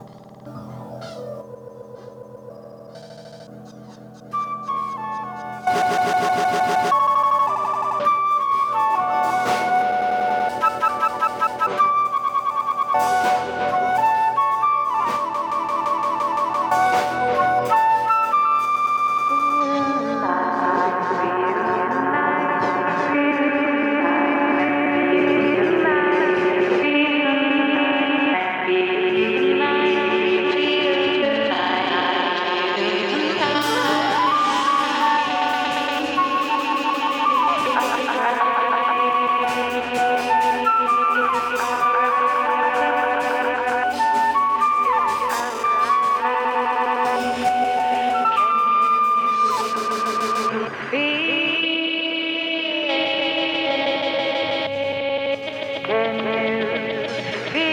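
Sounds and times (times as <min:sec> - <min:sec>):
stuttering ambient sound: 0:00.0 - 0:13.1, 0:13.9 - 0:57.7.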